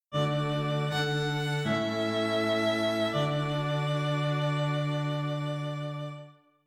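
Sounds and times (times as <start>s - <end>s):
string quartet: 0.1s - 6.4s.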